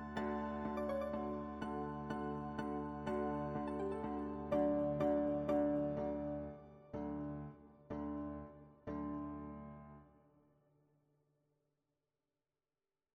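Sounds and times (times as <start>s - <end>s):
piano music: 0.0s - 10.0s.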